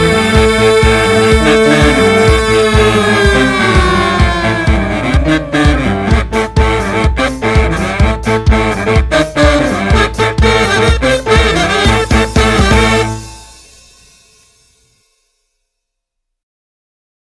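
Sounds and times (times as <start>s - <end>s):
kazoo: 0.0s - 13.8s
piano: 0.0s - 14.7s.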